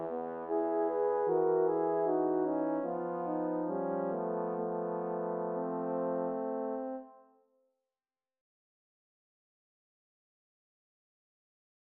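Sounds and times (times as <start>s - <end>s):
horn quartet playing: 0.0s - 7.2s.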